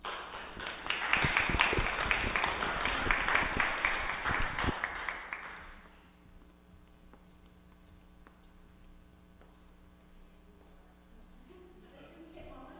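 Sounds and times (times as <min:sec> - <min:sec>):
crowd applauding: 0:00.0 - 0:05.9.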